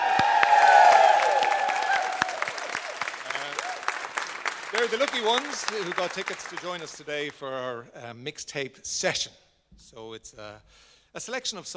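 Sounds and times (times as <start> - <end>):
studio audience whooping: 0.0 - 5.6
studio audience applause: 0.0 - 7.4
speech: 4.8 - 11.7.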